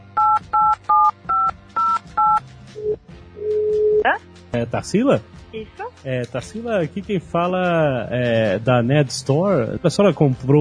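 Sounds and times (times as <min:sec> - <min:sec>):
touch-tone keypad beeps as a Skype call is dialed: 0:00.2 - 0:03.0
speech: 0:04.6 - 0:10.6.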